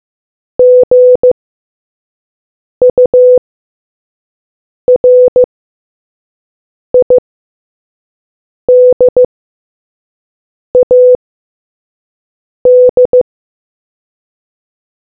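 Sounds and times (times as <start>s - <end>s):
morse code beeps: 0.6s - 1.4s, 2.8s - 3.4s, 4.9s - 5.5s, 7.0s - 7.2s, 8.7s - 9.3s, 10.8s - 11.2s, 12.7s - 13.2s.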